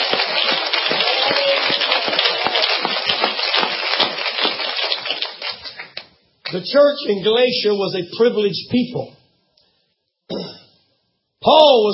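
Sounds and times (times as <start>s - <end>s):
people clapping hands to the Lord: 0.0s - 6.6s
speech: 6.5s - 9.2s, 11.4s - 11.9s.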